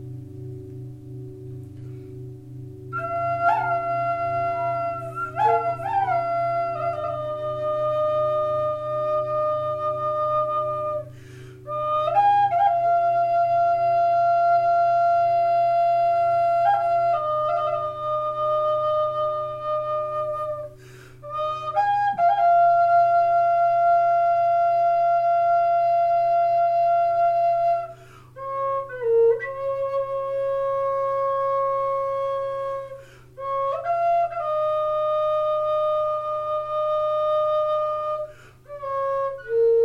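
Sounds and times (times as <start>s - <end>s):
singing bowl ringing tones: 0.0s - 6.8s
steady low hum: 0.0s - 39.7s.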